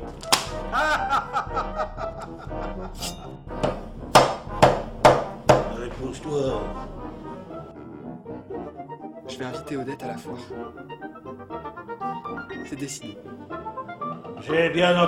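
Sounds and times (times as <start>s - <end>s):
knife chopping into a piece of meat: 0.1s - 0.6s, 3.0s - 5.8s
laughter: 0.5s - 3.4s
speech: 0.7s - 3.8s, 5.9s - 7.0s, 9.4s - 10.9s, 12.6s - 13.4s, 14.4s - 15.0s.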